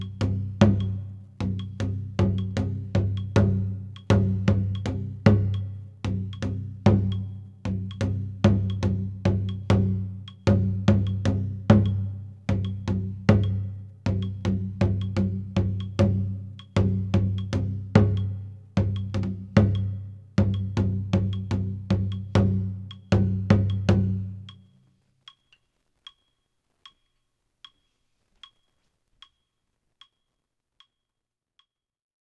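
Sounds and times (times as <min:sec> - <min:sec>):
daiko drums: 0:00.0 - 0:24.5.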